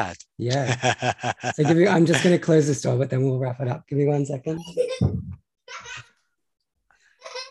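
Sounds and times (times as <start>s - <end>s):
speech: 0.0s - 6.0s
children giggling: 0.7s - 2.3s, 4.6s - 6.2s, 7.2s - 7.4s.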